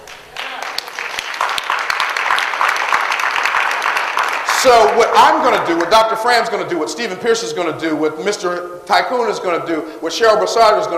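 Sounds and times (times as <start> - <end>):
crowd applauding: 0.0 - 6.2
speech: 4.6 - 10.9.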